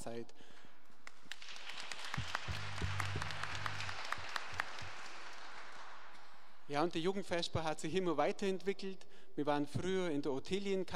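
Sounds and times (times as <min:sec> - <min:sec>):
speech: 0:00.0 - 0:00.6, 0:06.7 - 0:10.9
audience applause: 0:01.2 - 0:06.4.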